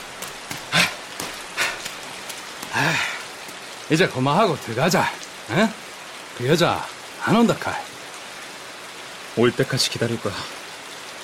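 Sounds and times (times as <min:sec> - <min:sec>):
steady rain: 0:00.0 - 0:11.2
speech: 0:02.8 - 0:03.1, 0:03.9 - 0:05.8, 0:06.4 - 0:07.9, 0:09.4 - 0:10.6.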